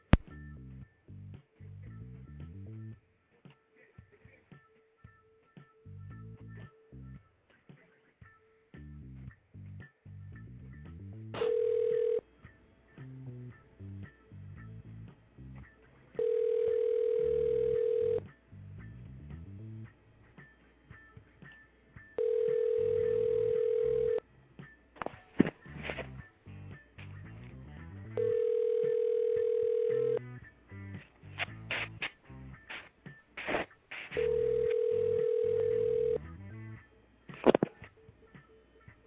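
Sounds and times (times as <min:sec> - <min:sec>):
faint music: 0:00.0 - 0:39.0
telephone ringback tone: 0:11.4 - 0:12.2, 0:16.2 - 0:18.2, 0:22.2 - 0:24.2, 0:28.2 - 0:30.2, 0:34.2 - 0:36.2.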